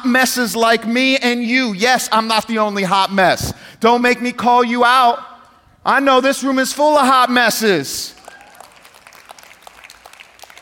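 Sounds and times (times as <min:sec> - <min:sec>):
speech: 0:00.0 - 0:08.2
weak audience clapping: 0:08.2 - 0:10.6.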